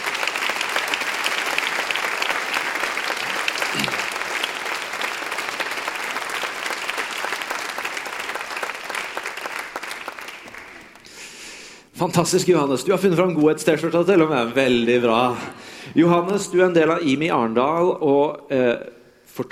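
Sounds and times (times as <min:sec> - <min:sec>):
audience applause: 0:00.0 - 0:11.1
speech: 0:12.0 - 0:19.5.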